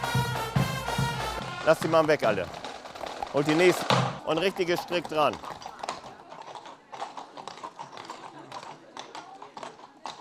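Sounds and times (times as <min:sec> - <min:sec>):
horse hooves clip-clopping: 0:00.0 - 0:10.2
speech: 0:01.6 - 0:02.6, 0:03.3 - 0:05.7
faint murmuring voices: 0:03.5 - 0:10.2.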